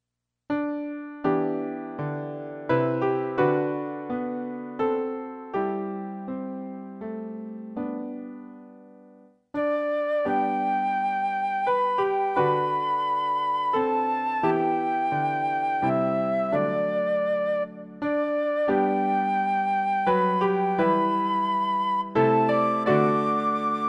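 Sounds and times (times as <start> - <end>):
high piano accompaniment in G: 0.5 - 23.8.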